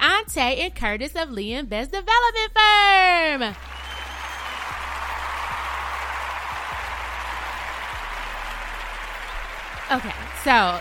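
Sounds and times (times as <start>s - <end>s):
speech: 0.3s - 3.7s, 9.9s - 10.7s
clapping sound effect: 3.5s - 10.7s.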